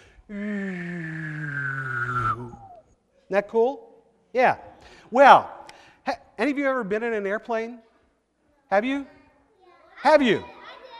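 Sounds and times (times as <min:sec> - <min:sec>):
speech: 0:00.3 - 0:00.6, 0:03.3 - 0:07.9, 0:08.7 - 0:09.2, 0:10.0 - 0:10.6
person humming a low steady note: 0:00.3 - 0:02.8
person whistling a clear high tone: 0:00.4 - 0:02.9.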